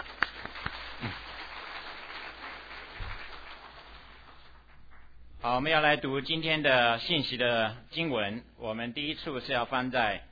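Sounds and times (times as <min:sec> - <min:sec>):
audience applause: 0:00.0 - 0:05.1
speech: 0:05.5 - 0:10.3.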